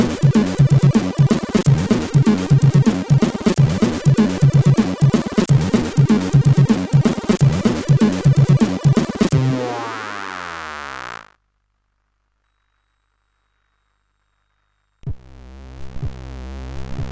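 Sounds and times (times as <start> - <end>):
intro on CSG8580R5 sound chip: 0.0 - 11.3.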